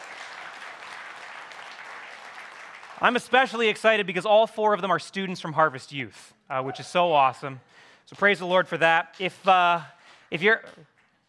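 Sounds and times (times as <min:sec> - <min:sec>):
congregation applauding during a church baptism service: 0:00.0 - 0:04.0
speech: 0:03.0 - 0:10.9.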